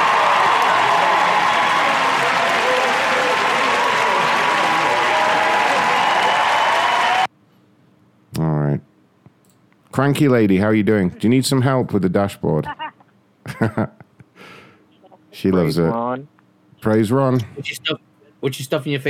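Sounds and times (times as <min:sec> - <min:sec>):
crowd cheering and clapping: 0:00.0 - 0:07.3
speech: 0:10.0 - 0:12.8, 0:13.6 - 0:14.0, 0:15.4 - 0:19.0.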